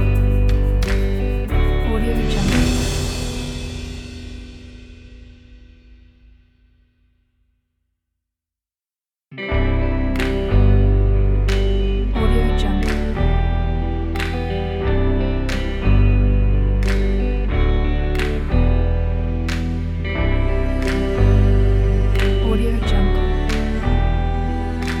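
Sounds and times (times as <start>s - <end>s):
calm motivational folk music: 0.0s - 3.9s, 9.5s - 24.9s.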